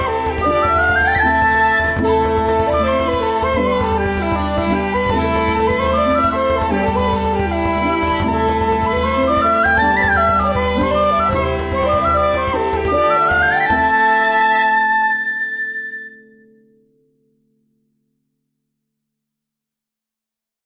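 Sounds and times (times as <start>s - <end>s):
Celtic band playing a song: 0.0s - 15.9s.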